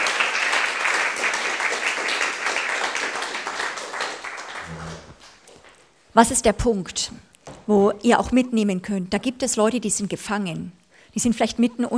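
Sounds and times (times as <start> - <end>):
crowd applauding: 0.0 - 5.7
low murmur: 4.6 - 5.2
speech: 6.2 - 11.9.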